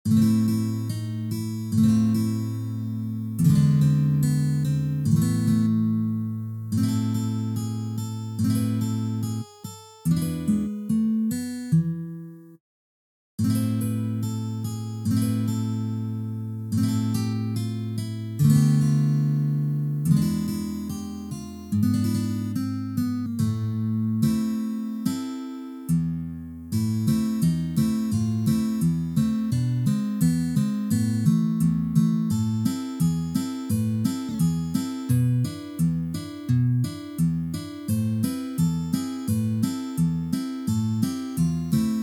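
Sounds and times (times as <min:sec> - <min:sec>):
guitar playing: 0:00.1 - 0:12.4, 0:13.4 - 0:42.0.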